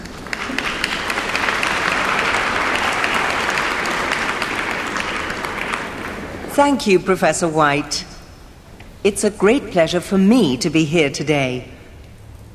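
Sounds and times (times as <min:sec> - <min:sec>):
audience applause welcoming a professor: 0:00.0 - 0:06.9
speech: 0:06.6 - 0:08.1, 0:09.0 - 0:11.8.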